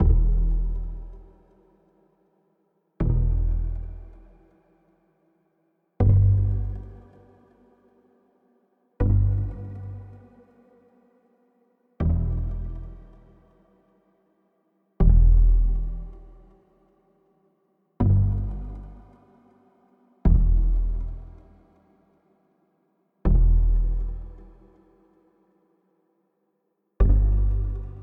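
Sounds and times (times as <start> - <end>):
bass: 0.0 - 1.9, 3.0 - 4.7, 6.0 - 7.8, 9.0 - 10.9, 12.0 - 13.7, 15.0 - 16.8, 18.0 - 22.1, 23.2 - 25.3, 27.0 - 28.0.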